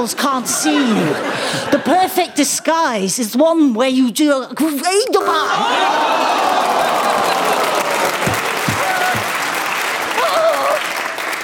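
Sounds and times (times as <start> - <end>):
speech: 0.0 - 7.3
laughter: 0.2 - 2.6, 5.2 - 9.4
audience applause: 5.7 - 11.4.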